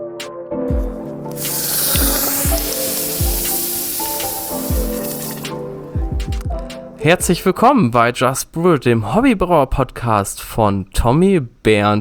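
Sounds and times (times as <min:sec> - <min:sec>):
steady rhythmic music beat with low tones: 0:00.7 - 0:07.6
hot basalt stone sizzling in brewing wort: 0:00.8 - 0:05.9
speech: 0:07.0 - 0:12.0.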